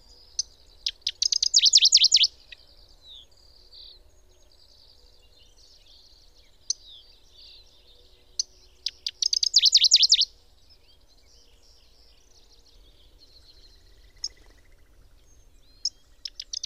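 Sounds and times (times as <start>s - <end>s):
bird calling: 0.9s - 2.3s, 8.8s - 10.3s.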